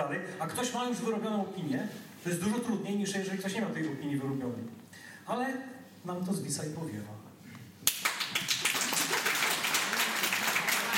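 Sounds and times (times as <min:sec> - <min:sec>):
speech: 0:00.1 - 0:07.2
hand clapping: 0:07.8 - 0:10.9.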